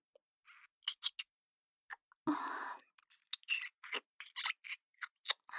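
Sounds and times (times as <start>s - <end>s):
kissing loop: 0.9s - 1.3s, 3.3s - 5.4s.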